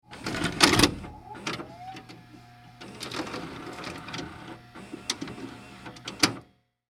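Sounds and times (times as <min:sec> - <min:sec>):
tape inserted into VCR: 0:00.1 - 0:06.5.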